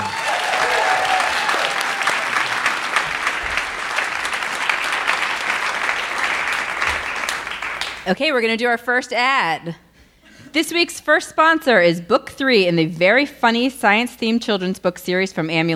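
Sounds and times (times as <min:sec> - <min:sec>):
faint cheers: 0:00.0 - 0:05.2
crowd applauding: 0:00.0 - 0:08.1
speech: 0:08.1 - 0:09.8, 0:10.5 - 0:15.7.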